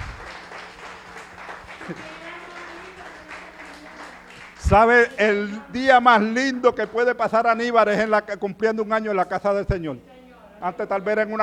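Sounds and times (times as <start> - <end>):
church audience clapping: 0.0 - 5.5
speech: 1.9 - 2.2, 4.7 - 11.4.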